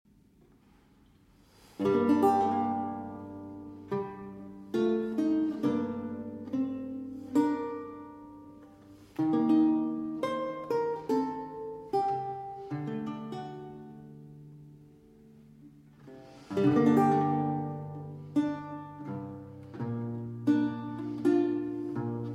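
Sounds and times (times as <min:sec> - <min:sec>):
solo instrumental piece: 0:01.8 - 0:22.3.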